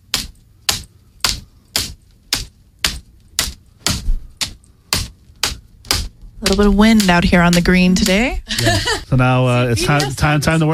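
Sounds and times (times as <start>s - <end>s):
slapping: 0.0s - 8.9s
speech: 6.4s - 10.7s
laughter: 8.5s - 10.7s.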